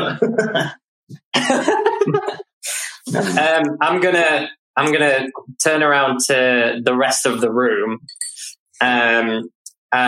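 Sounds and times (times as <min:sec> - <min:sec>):
laughter: 0:00.0 - 0:00.7, 0:01.3 - 0:03.6
speech: 0:00.1 - 0:02.2, 0:03.1 - 0:08.2, 0:08.8 - 0:10.0
person coughing: 0:01.4 - 0:03.5.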